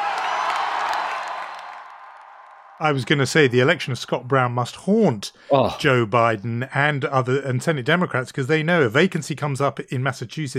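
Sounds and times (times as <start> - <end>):
crowd cheering: 0.0 - 4.0
speech: 2.8 - 10.5.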